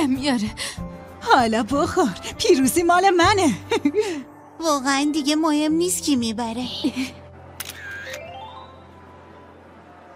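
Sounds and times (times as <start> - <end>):
speech: 0.0 - 7.2
video game camera shutter click: 7.6 - 8.3.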